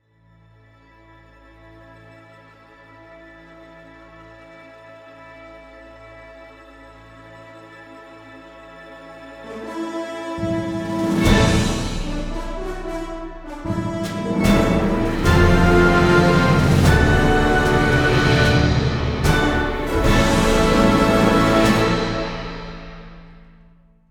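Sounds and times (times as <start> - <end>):
fanfare: 9.6 - 23.6.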